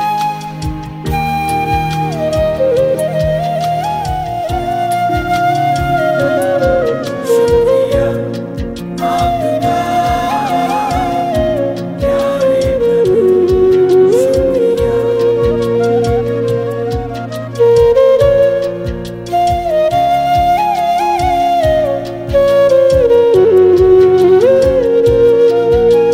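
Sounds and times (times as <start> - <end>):
instrumental flute: 0.0 - 26.1.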